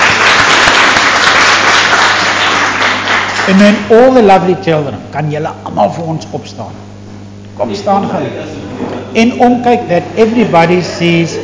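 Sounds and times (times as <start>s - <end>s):
audience applause: 0.0s - 3.8s
speech: 3.5s - 6.9s, 7.6s - 11.4s.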